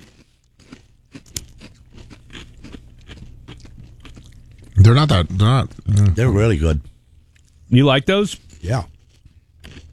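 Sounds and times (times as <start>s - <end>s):
person chewing a crunchy spicy snack: 0.0s - 5.1s, 8.4s - 9.9s
steady low hum: 0.0s - 9.9s
speech: 4.9s - 6.9s, 7.7s - 8.9s.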